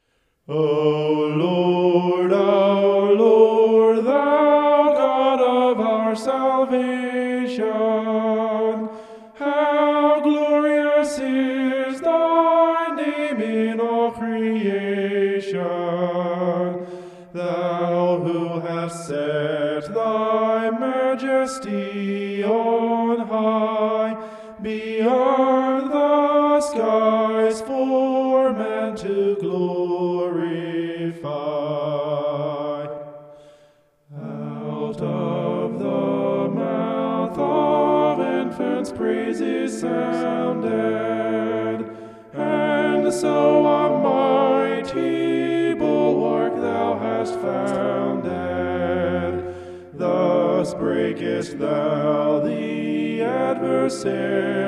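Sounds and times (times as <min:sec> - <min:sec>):
homophonic vocals: 0:00.5 - 0:33.5, 0:34.1 - 0:54.6.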